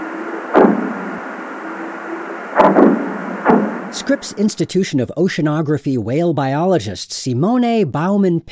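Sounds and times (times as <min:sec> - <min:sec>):
underwater bomb explosions off the coast of California recorded by hydrophone: 0:00.0 - 0:04.5
speech: 0:04.0 - 0:08.4.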